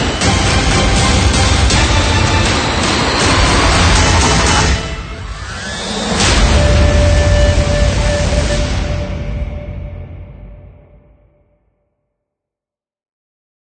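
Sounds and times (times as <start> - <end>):
hybrid trailer music: 0.0 - 11.5.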